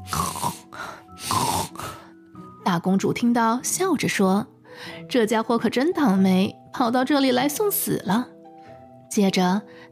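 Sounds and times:
voice imitating snoring with rasping snorts: 0.0 - 2.1
speech: 2.7 - 8.4, 9.1 - 9.9.

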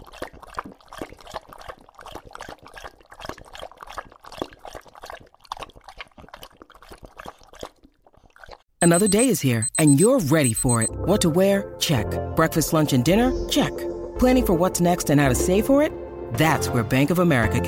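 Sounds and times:
English Bulldog lapping water: 0.0 - 8.7
speech: 8.8 - 17.6.

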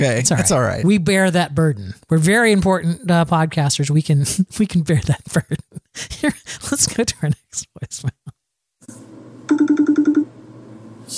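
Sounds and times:
speech: 0.0 - 8.2
telephone ringing with an incoming call: 9.5 - 10.3.

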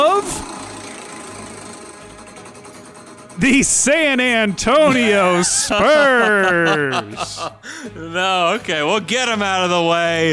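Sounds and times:
prize wheel spinning: 0.0 - 7.1
speech: 3.4 - 10.3
laughter: 4.7 - 8.2.

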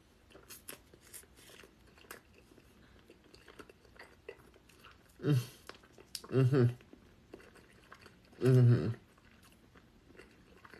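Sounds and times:
person chewing vegan hot dog: 0.2 - 10.7
hummed mm sounds of enjoyment: 5.2 - 6.9, 8.4 - 9.0.

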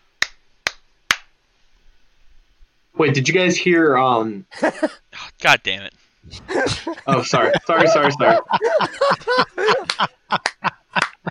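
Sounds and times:
hand clap: 0.2 - 1.3, 9.8 - 11.2
speech: 3.0 - 10.8
laughter: 4.5 - 5.0, 6.3 - 11.2.

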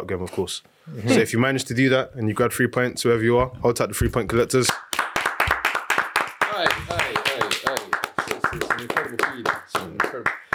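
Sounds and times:
speech: 0.0 - 4.8
sharp hand claps: 4.7 - 10.5.

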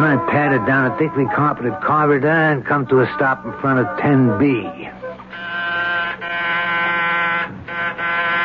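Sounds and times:
speech: 0.2 - 5.0
harsh steady doorbell buzzer: 5.3 - 8.4.

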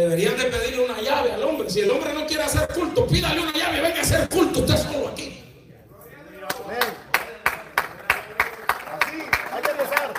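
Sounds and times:
speech: 0.0 - 4.7
rhythmic hand clapping: 6.5 - 10.1.

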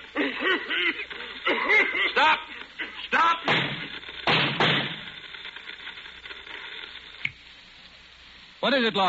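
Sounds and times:
laughter: 0.0 - 3.4
gunshots: 3.3 - 5.4
speech: 8.7 - 9.0.

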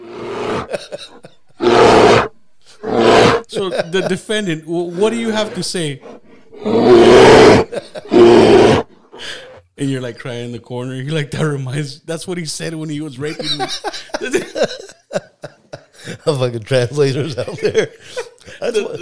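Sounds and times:
voice imitating a bear roaring in a comic bit: 0.0 - 0.8, 1.6 - 3.5, 5.1 - 8.9
laughter: 0.7 - 1.6, 3.5 - 5.9, 7.6 - 8.2, 13.2 - 19.0
speech: 0.8 - 1.4, 3.5 - 15.3, 16.2 - 19.0.

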